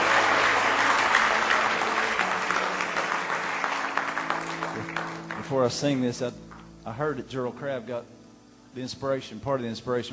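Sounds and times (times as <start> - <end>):
audience hand clapping: 0.0 - 6.8
speech: 5.5 - 10.1.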